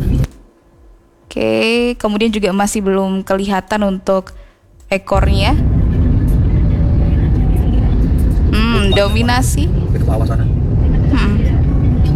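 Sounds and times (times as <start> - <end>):
road traffic with cars and tour buses: 0.0 - 0.9, 4.9 - 12.1
speech: 1.3 - 5.7, 9.0 - 11.3.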